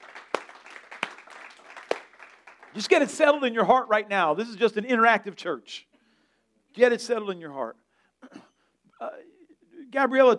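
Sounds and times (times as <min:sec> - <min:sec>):
sharp louder handclaps: 0:00.0 - 0:03.1
audience clapping: 0:00.0 - 0:03.4
speech: 0:02.8 - 0:05.9, 0:06.8 - 0:09.3, 0:09.9 - 0:10.3.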